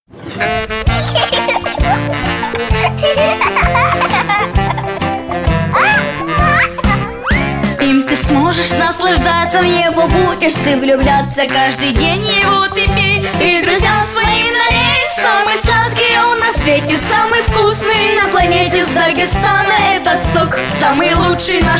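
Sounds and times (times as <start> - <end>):
laughter: 0.4 - 7.8
vocal song: 7.6 - 21.7.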